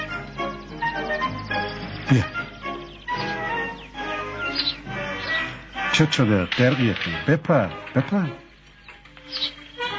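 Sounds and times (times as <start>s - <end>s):
small bird chirping: 0.0s - 7.2s, 8.2s - 9.9s
speech: 1.1s - 2.4s, 6.0s - 8.4s.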